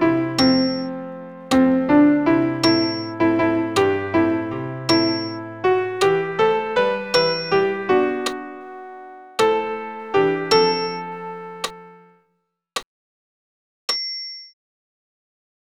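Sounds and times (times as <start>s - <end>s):
alto piano accompaniment for a Credo: 0.0s - 12.2s.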